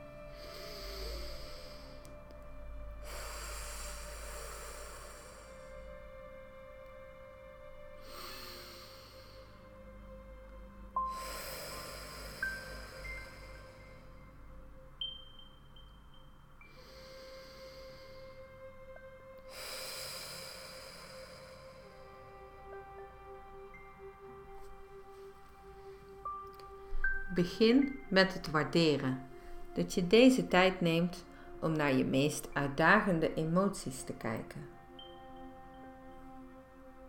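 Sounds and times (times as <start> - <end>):
deep breathing during guided meditation: 0.0 - 6.4, 7.8 - 10.3, 10.9 - 14.6, 16.6 - 23.0
speech: 27.4 - 34.7.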